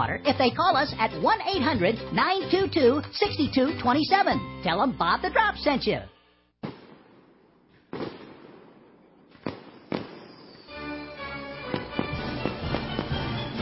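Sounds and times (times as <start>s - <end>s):
speech: 0.2s - 6.8s
fireworks booming and crackling: 6.6s - 10.9s, 11.5s - 13.5s.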